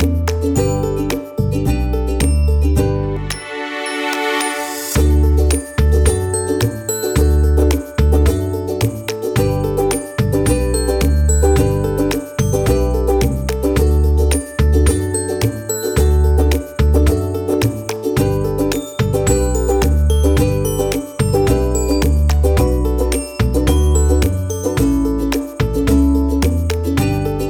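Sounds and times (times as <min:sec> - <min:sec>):
happy kids background music: 0:00.0 - 0:27.4.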